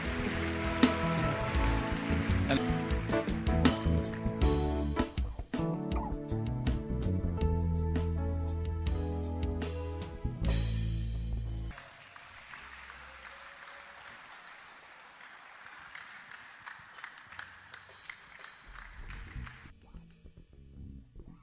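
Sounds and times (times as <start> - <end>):
congregation clapping hands at a church service: 0.0 - 5.2, 11.7 - 19.7
loud music: 0.0 - 11.7.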